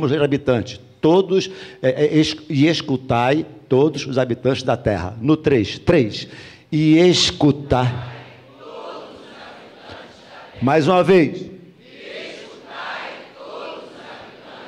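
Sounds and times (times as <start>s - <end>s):
speech: 0.0s - 8.1s, 10.6s - 11.5s
audience shouting a battle cry: 8.2s - 10.6s, 11.8s - 14.6s.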